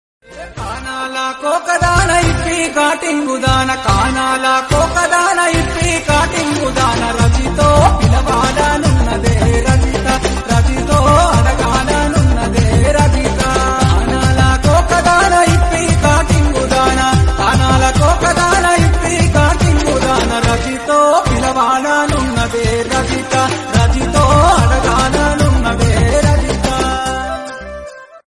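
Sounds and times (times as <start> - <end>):
DJ mix of folk songs: 0.2 - 28.2.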